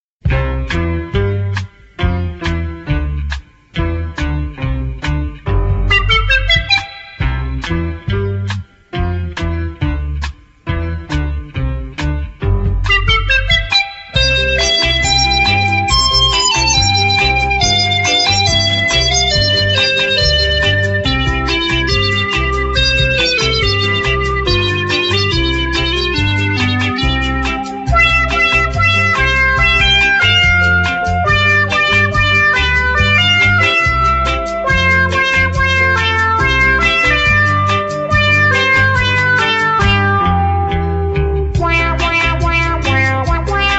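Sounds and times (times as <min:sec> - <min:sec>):
instrumental music: 0:00.2 - 0:43.7.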